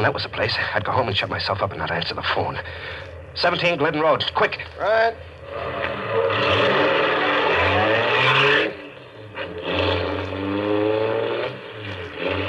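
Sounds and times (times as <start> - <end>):
speech: 0.0 - 6.6
car engine revving and pulling away: 5.4 - 12.4.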